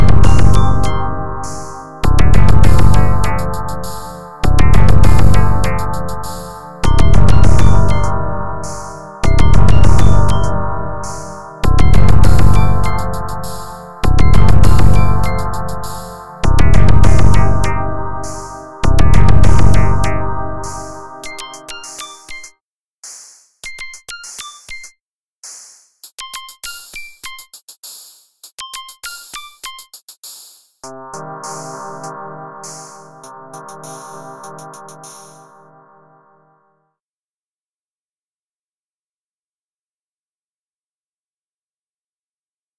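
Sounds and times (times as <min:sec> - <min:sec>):
distorted relaxation music: 0:00.0 - 0:21.6, 0:30.8 - 0:36.4.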